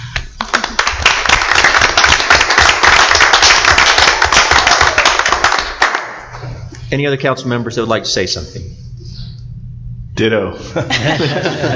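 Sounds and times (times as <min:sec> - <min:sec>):
round of applause: 0:00.1 - 0:06.3
speech: 0:06.9 - 0:08.8, 0:10.2 - 0:11.7
laughter: 0:10.6 - 0:11.7.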